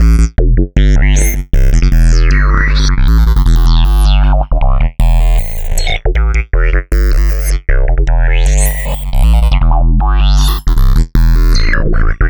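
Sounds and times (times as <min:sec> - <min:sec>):
synth bass: 0:00.0 - 0:12.2.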